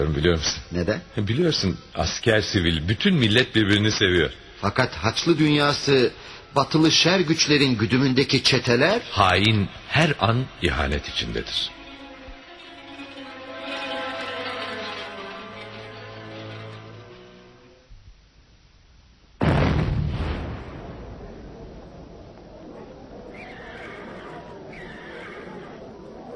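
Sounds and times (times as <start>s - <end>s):
speech: 0.0s - 11.8s
sustained tonal sound: 8.2s - 17.8s
bomb explosion: 19.4s - 26.3s.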